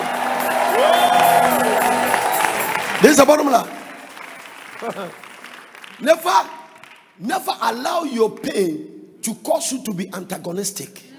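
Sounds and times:
audience clapping and shouting: 0.0 - 8.7
speech: 3.0 - 3.8, 4.8 - 5.2, 6.0 - 6.6, 7.2 - 11.1.

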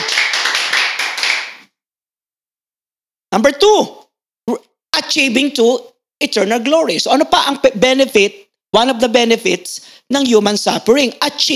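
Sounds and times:
congregation clapping hands in praise of the Lord: 0.0 - 1.7
speech: 3.4 - 4.6, 5.2 - 11.5.

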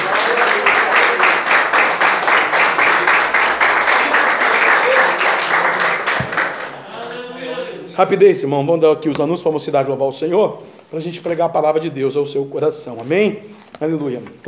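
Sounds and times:
audience clapping: 0.0 - 7.3
speech: 8.0 - 14.4.

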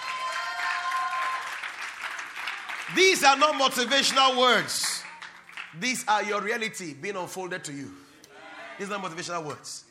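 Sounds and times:
audience clapping hands: 0.0 - 6.6
speech: 2.9 - 4.9, 5.7 - 8.0, 8.8 - 9.8.

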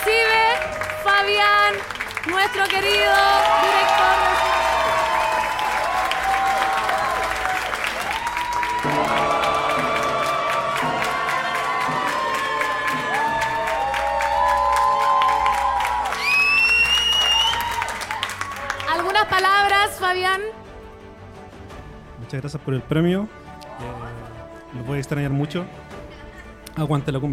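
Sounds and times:
audience applause and cheering: 0.0 - 21.8
speech: 1.3 - 4.5, 22.3 - 23.4, 24.7 - 25.8, 26.8 - 27.3.

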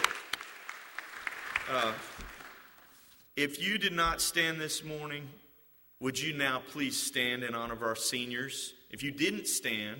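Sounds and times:
scattered hand claps: 0.0 - 2.9
speech: 1.7 - 2.3, 3.4 - 5.4, 6.0 - 9.9.

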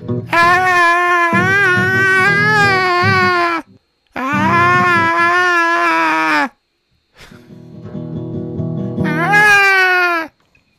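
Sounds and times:
voice imitating wild screaming singing: 0.3 - 6.6, 9.0 - 10.3.

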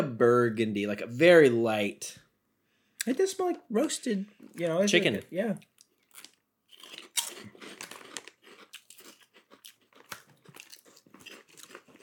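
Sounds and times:
speech: 0.0 - 2.2, 3.0 - 6.3
crunching Bugles corn snacks: 5.6 - 12.0.

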